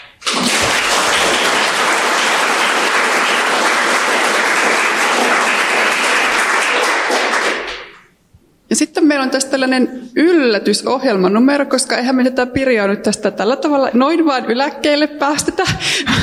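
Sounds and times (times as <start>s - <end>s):
applause for the speakers: 0.0s - 8.1s
speech: 9.2s - 16.2s.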